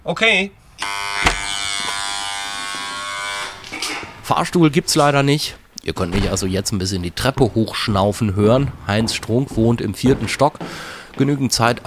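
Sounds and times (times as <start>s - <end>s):
speech: 0.0s - 1.3s, 4.3s - 11.8s
apartment doorbell buzzer ringing: 0.8s - 3.7s.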